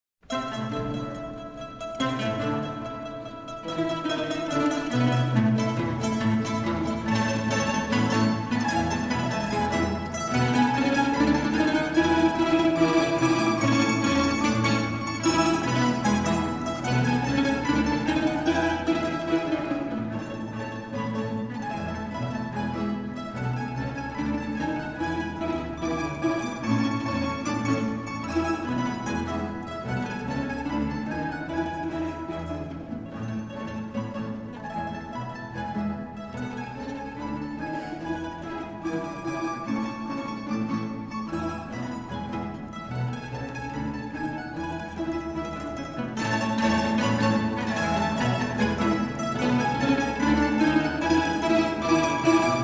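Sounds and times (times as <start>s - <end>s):
old Russian music: 0.2s - 52.6s.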